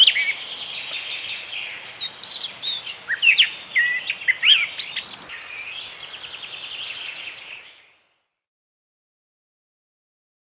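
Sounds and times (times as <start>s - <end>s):
blackcap voice: 0.0s - 7.6s.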